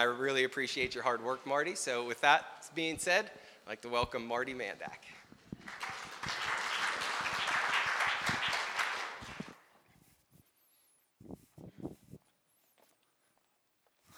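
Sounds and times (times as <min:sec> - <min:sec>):
speech: 0:00.0 - 0:06.0
round of applause: 0:05.5 - 0:09.6.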